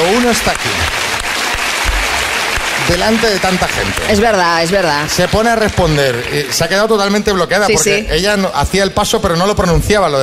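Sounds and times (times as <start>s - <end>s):
crowd applauding: 0.0s - 8.1s
speech: 0.3s - 1.0s, 2.9s - 10.2s.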